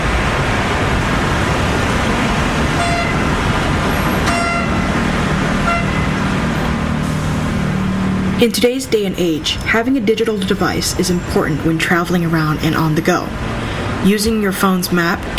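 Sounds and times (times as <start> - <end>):
street traffic roar: 0.0 - 15.3
car horn toots: 2.7 - 6.4
speech: 8.4 - 15.3.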